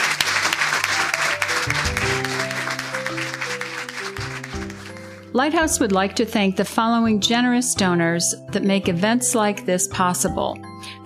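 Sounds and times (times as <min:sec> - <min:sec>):
audience applause: 0:00.0 - 0:05.2
speech: 0:05.4 - 0:11.0.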